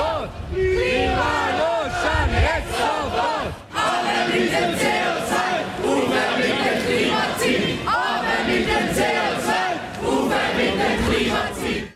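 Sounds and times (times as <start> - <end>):
climate strike students chanting slogans in front of the town hall: 0.0 - 11.9.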